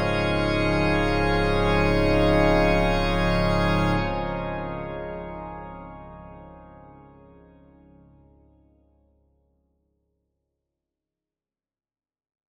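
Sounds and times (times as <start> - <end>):
organ improvisation: 0.0 - 8.2.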